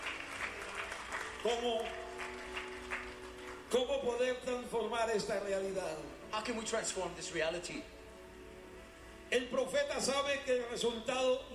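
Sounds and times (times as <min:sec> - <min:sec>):
audience applause: 0:00.0 - 0:03.8
speech: 0:01.4 - 0:02.0, 0:03.7 - 0:08.0, 0:09.3 - 0:11.5.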